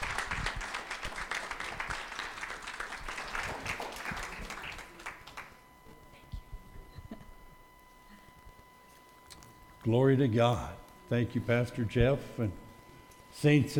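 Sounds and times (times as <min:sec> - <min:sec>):
church congregation clapping to welcome two guests: 0:00.0 - 0:05.6
speech: 0:09.8 - 0:12.6, 0:13.4 - 0:13.7.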